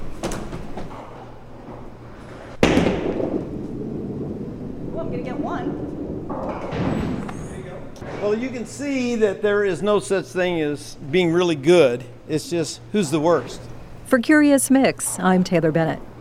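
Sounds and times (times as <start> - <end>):
duckpin bowling ball rolling down the lane: 0.0 - 9.1
speech: 5.1 - 7.0, 8.2 - 16.1.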